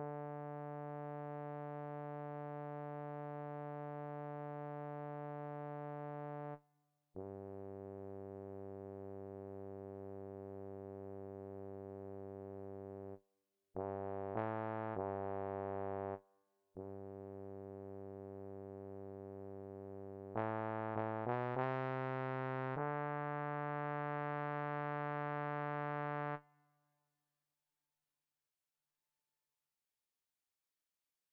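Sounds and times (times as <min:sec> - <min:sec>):
bass: 0:00.0 - 0:06.6, 0:07.2 - 0:13.2, 0:13.8 - 0:16.2, 0:16.8 - 0:26.4.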